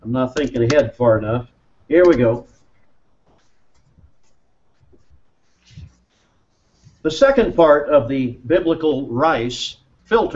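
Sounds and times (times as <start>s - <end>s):
speech: 0.0s - 2.6s, 7.0s - 10.3s
handwriting strokes during a teaching session: 2.0s - 7.4s.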